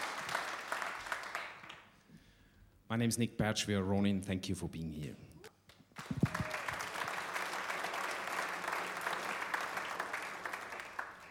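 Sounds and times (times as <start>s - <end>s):
audience applause after live concert: 0.0s - 1.8s, 6.0s - 11.2s
speech: 2.9s - 5.4s.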